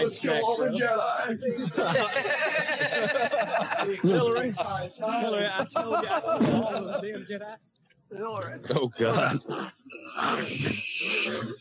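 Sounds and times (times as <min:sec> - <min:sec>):
speech: 0:00.1 - 0:11.5
laughter: 0:00.7 - 0:07.6
loud harsh sneeze: 0:10.1 - 0:11.5.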